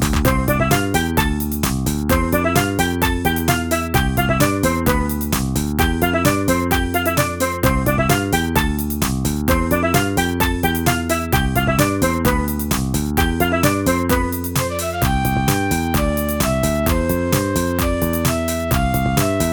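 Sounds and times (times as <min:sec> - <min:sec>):
bad synth beach music: 0:00.1 - 0:19.5.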